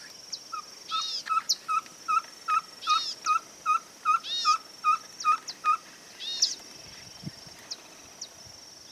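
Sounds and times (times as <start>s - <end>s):
Caburé Chico owl calling: 0.3s - 6.6s.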